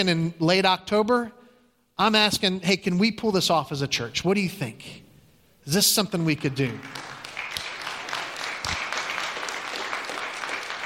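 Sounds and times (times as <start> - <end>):
speech: 0.0 - 1.4, 2.0 - 5.0, 5.6 - 7.1
audience clapping: 6.3 - 10.8.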